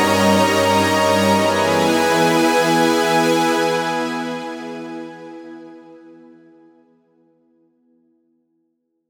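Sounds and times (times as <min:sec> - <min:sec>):
classical chords: 0:00.0 - 0:06.0.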